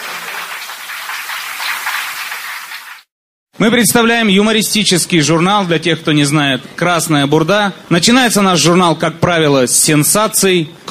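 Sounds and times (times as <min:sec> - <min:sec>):
audience applause: 0:00.0 - 0:03.1
speech: 0:03.6 - 0:10.8.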